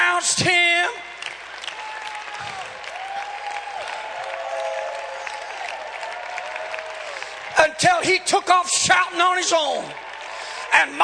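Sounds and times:
speech: 0.2s - 0.6s, 8.1s - 10.0s, 10.7s - 11.0s
audience applause: 1.1s - 8.3s, 9.7s - 11.0s.

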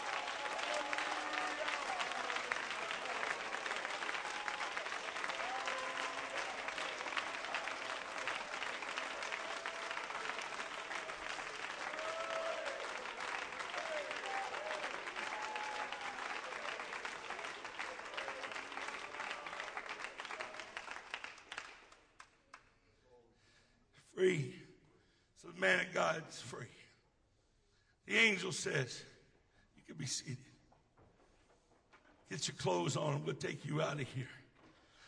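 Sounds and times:
faint voices and cheers: 0.0s - 20.9s
crowd clapping: 0.0s - 22.7s
speech: 24.2s - 24.6s, 25.6s - 26.8s, 28.1s - 29.1s, 30.0s - 30.5s, 32.4s - 34.4s.

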